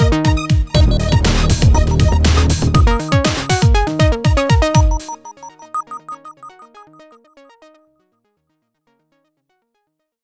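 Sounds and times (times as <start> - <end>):
techno signal: 0.8 - 7.2.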